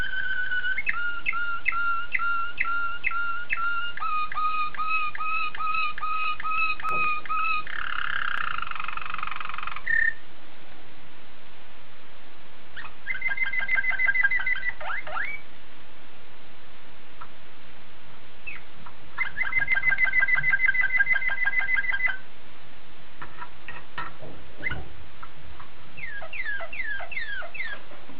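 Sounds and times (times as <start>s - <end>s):
waterslager canary song: 0.0s - 10.3s, 12.7s - 15.5s, 17.2s - 17.4s, 18.4s - 22.3s, 23.2s - 28.1s.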